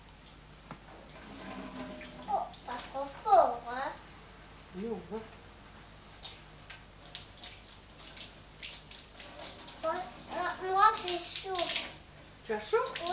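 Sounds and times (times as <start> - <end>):
child playing in cold bath water splashing: 1.1 - 3.4, 6.2 - 12.0, 12.6 - 13.1
child speaking: 2.2 - 4.0, 9.3 - 12.0, 12.6 - 13.1
speech: 4.8 - 5.4, 12.5 - 13.1.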